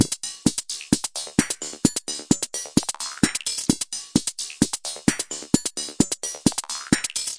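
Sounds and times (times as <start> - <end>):
analog drum loops and breaks: 0.0 - 7.3.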